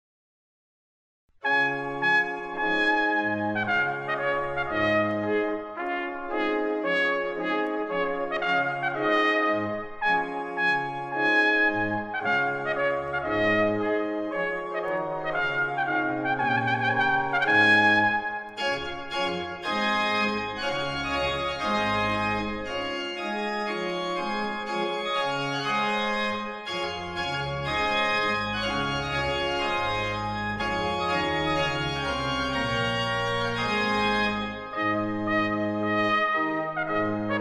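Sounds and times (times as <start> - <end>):
trumpet piece: 1.4 - 37.3.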